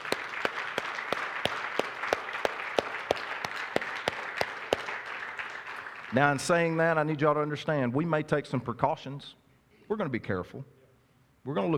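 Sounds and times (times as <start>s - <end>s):
applause: 0.0s - 7.0s
speech: 6.1s - 10.8s, 11.4s - 11.7s.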